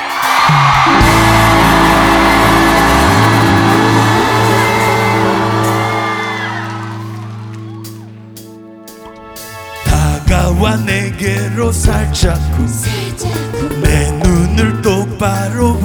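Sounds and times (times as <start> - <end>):
crowd cheering and shouting: 0.0 - 8.6
speech: 10.8 - 15.8.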